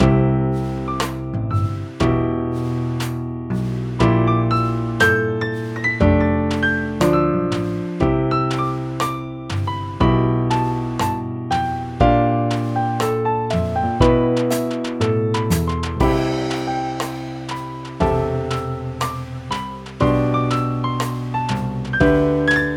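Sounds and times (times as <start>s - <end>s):
romantic jazz music: 0.0s - 22.7s.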